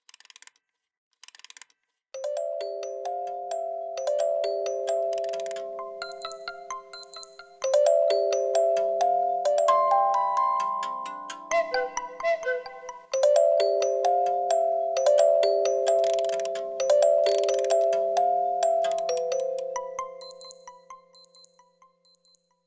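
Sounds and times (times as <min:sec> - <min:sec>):
clock alert: 0:03.2 - 0:19.4.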